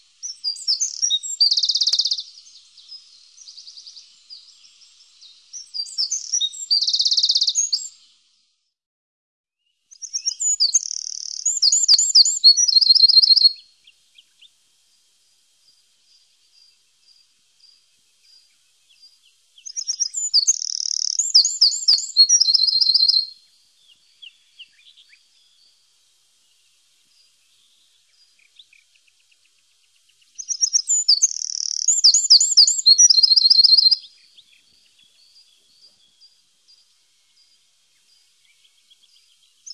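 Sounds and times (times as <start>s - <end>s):
Eurasian wren singing: 0.2s - 8.0s, 9.9s - 14.6s, 15.8s - 25.8s, 27.1s - 39.7s.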